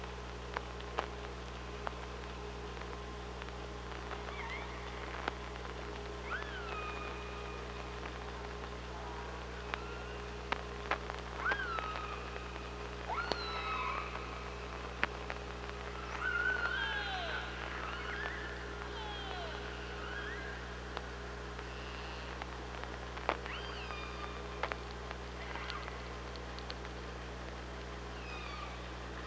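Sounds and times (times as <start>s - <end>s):
low hum: 0.0s - 29.2s
killer whale calls: 6.2s - 8.1s, 11.4s - 14.5s, 16.0s - 20.8s, 23.3s - 24.8s, 25.4s - 26.2s, 28.1s - 29.2s.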